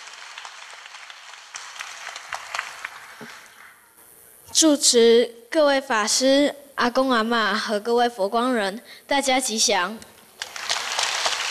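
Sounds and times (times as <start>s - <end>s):
audience applause: 0.0s - 3.9s, 10.4s - 11.4s
speech: 4.5s - 10.1s.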